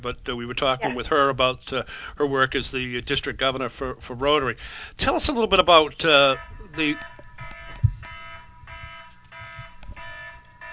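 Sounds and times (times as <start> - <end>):
speech: 0.0 - 7.2
phone alarm beeping: 6.0 - 10.7.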